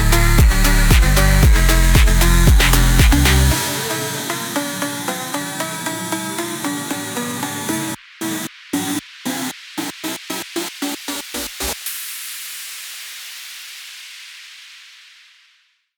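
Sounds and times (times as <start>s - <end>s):
phonk house music: 0.0s - 11.9s.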